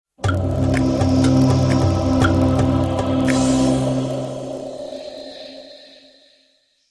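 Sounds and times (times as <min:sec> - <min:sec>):
Ubuntu startup sound: 0:00.2 - 0:05.0.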